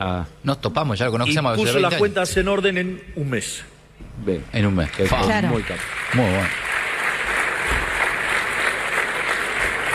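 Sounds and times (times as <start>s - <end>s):
speech: 0.0s - 6.6s
audience applause: 5.0s - 9.9s.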